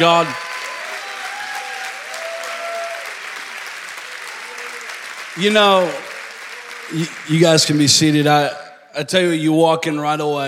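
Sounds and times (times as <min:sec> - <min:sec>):
speech: 0:00.0 - 0:00.4, 0:05.4 - 0:06.1, 0:06.9 - 0:10.4
audience applause: 0:00.0 - 0:08.3.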